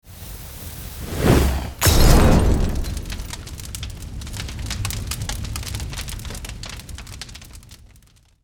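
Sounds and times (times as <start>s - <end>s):
fire from a Molotov: 0.0s - 8.4s
Molotov glass breaking: 1.6s - 3.5s.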